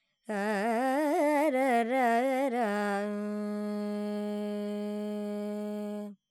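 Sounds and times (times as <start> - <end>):
Carnatic female vocal alap in Lydian mode: 0.3 - 6.2.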